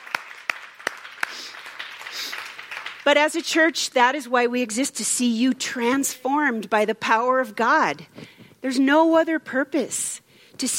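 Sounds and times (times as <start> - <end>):
church audience applause: 0.0 - 3.1
speech: 3.1 - 10.7.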